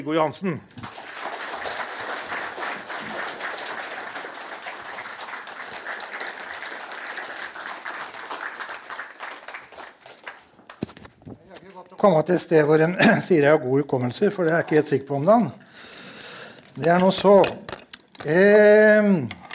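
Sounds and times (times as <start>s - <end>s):
speech: 0.0s - 0.8s, 12.0s - 15.6s, 16.8s - 17.6s, 18.2s - 19.4s
audience applause: 0.8s - 10.8s.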